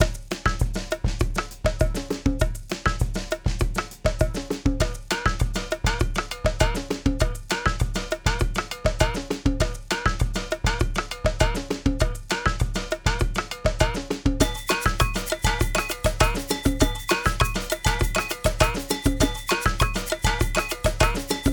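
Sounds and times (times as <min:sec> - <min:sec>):
samba music: 0:00.0 - 0:21.5.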